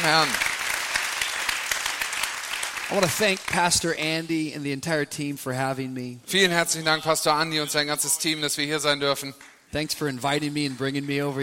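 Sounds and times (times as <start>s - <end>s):
man speaking loudly: 0.0s - 0.4s, 2.9s - 11.4s
speech: 0.0s - 0.5s, 2.9s - 11.4s
crowd applauding: 0.0s - 3.9s, 9.4s - 11.4s.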